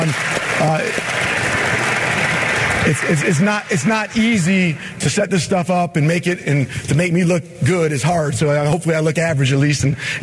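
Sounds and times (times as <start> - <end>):
speech: 0.0 - 1.4, 2.8 - 10.2
audience applause: 0.0 - 4.9.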